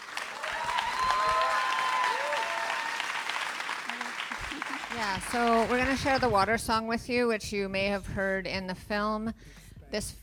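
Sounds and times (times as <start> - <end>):
audience applause: 0.0 - 6.2
speech: 5.0 - 10.2.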